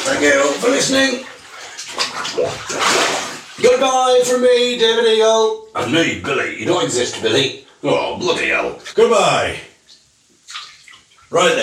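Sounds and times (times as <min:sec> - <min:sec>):
bathwater sloshing in a bathtub: 0:00.0 - 0:04.5, 0:09.9 - 0:11.5
speech: 0:00.1 - 0:01.3, 0:02.4 - 0:09.7, 0:11.3 - 0:11.6.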